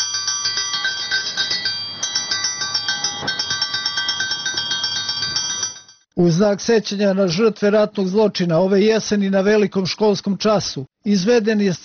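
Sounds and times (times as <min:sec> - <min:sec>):
school bell ringing: 0:00.0 - 0:06.1
speech: 0:06.2 - 0:11.8.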